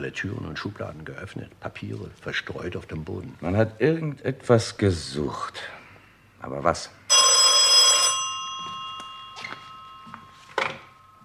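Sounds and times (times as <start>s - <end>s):
speech: 0.0s - 5.8s, 6.4s - 7.1s
telephone bell ringing: 7.1s - 11.2s.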